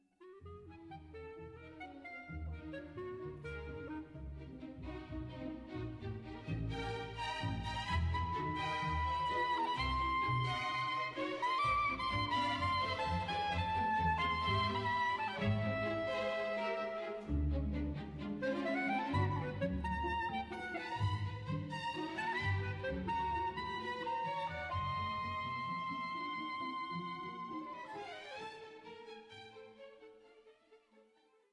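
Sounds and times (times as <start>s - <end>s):
clarinet concerto: 0.2s - 28.9s.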